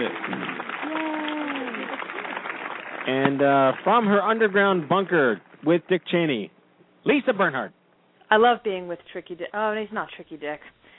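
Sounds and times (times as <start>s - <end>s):
applause sound effect: 0.0s - 5.8s
speech: 3.1s - 10.8s.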